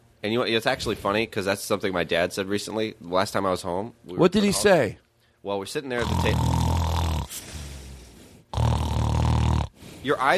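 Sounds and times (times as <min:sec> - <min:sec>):
speech: 0:00.2 - 0:06.5, 0:10.0 - 0:10.3
loud snoring from a sleeping person: 0:06.0 - 0:10.0.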